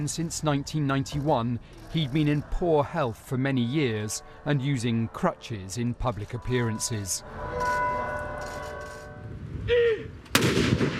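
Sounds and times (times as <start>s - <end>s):
speech: 0.0s - 7.8s
soft sustained tones: 3.3s - 9.5s
cannon blast in tribute salute: 10.3s - 10.9s.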